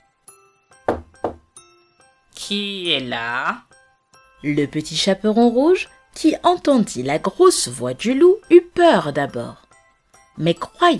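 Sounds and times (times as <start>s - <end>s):
heavy knocks on a door: 0.8s - 1.5s
speech: 2.5s - 3.7s, 4.4s - 9.6s, 10.4s - 10.9s.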